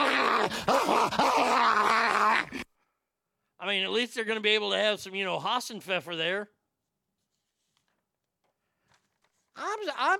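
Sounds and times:
human voice imitating a tiger growling: 0:00.0 - 0:02.6
speech: 0:00.5 - 0:02.0, 0:03.7 - 0:06.6, 0:09.6 - 0:10.1.

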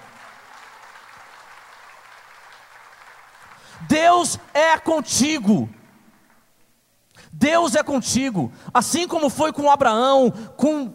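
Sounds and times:
audience applause: 0:00.0 - 0:04.6
speech: 0:03.8 - 0:05.8, 0:07.4 - 0:10.9.

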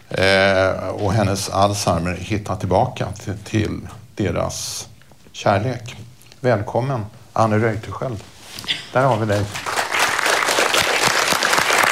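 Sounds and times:
speech: 0:01.0 - 0:08.3, 0:08.9 - 0:09.7
audience applause: 0:09.4 - 0:11.9.

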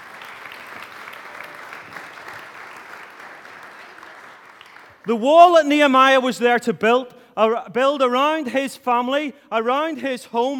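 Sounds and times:
audience applause: 0:00.0 - 0:05.1
speech: 0:05.0 - 0:10.5.

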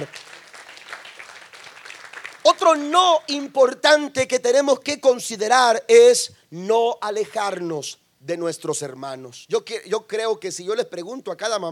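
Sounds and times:
applause: 0:00.0 - 0:03.3
speech: 0:02.5 - 0:11.7.

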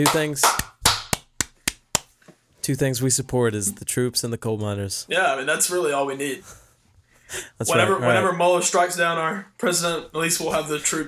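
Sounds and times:
speech: 0:00.0 - 0:00.6, 0:02.7 - 0:06.6, 0:07.3 - 0:11.0
hands clapping into microphone: 0:00.0 - 0:02.1.

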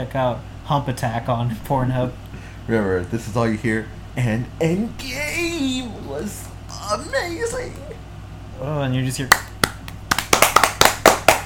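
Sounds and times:
speech: 0:00.0 - 0:09.5
applause sound effect of hand claps: 0:09.3 - 0:11.4.

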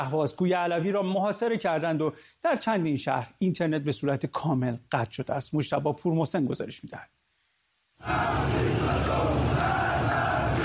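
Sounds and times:
speech: 0:00.0 - 0:07.2, 0:08.0 - 0:09.7
crowd shouting protest slogans in street: 0:08.0 - 0:10.6.

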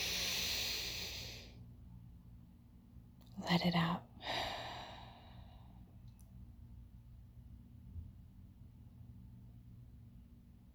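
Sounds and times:
deep breath in: 0:00.0 - 0:01.5, 0:04.2 - 0:05.8
speech: 0:03.4 - 0:04.5.

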